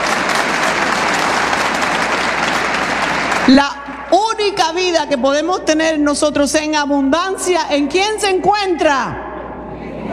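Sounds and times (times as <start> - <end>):
applause for the glory of God: 0.0 - 3.6
speech: 3.5 - 9.2.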